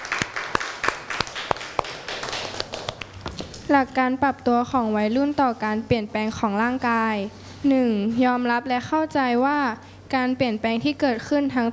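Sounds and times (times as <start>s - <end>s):
audience clapping: 0.0s - 3.4s
speech: 3.7s - 11.7s.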